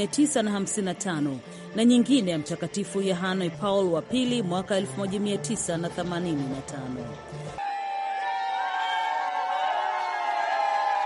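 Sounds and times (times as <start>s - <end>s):
speech: 0.0s - 7.7s
large crowd cheering as Pope Francis greets them: 7.6s - 11.0s.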